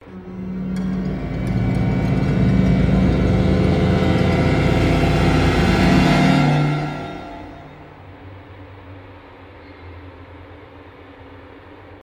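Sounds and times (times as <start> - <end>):
scary tense music: 0.0 - 8.8.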